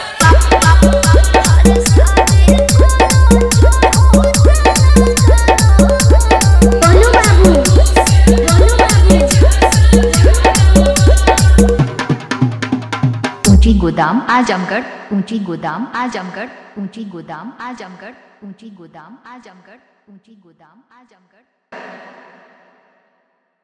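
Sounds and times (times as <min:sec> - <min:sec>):
new Bhojpuri DJ dance song: 0:00.2 - 0:12.3, 0:13.4 - 0:17.6.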